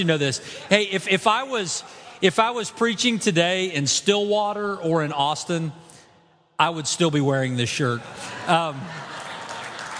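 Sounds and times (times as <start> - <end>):
laughter: 0.0 - 2.8, 7.7 - 9.9
speech: 0.0 - 5.9, 6.6 - 9.1
audience applause: 8.8 - 9.9.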